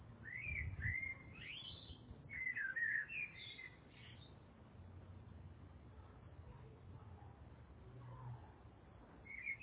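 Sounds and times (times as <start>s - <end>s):
birds chirping: 0.3s - 4.4s, 9.3s - 9.6s.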